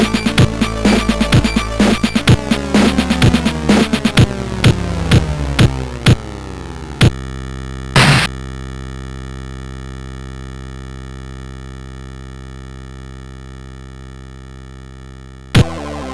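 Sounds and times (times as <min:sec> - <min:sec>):
digital remix on MOS6581R2 SID chip: 0:00.0 - 0:07.1, 0:08.0 - 0:08.3, 0:15.6 - 0:16.1.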